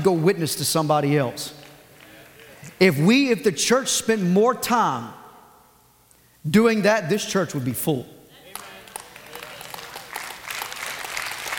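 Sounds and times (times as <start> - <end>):
speech: 0.0 - 1.6, 2.8 - 5.2, 6.4 - 8.2
audience clapping: 1.5 - 2.8, 8.4 - 11.5.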